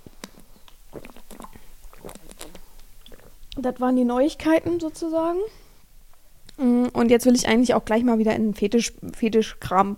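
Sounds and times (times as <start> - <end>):
person drinking a sip of water: 0.0 - 3.6
speech: 3.6 - 5.6, 6.6 - 9.9.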